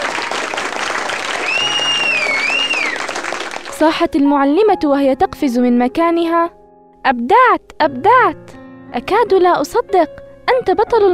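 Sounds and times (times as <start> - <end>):
loud applause: 0.0 - 3.8
speech: 3.8 - 11.1.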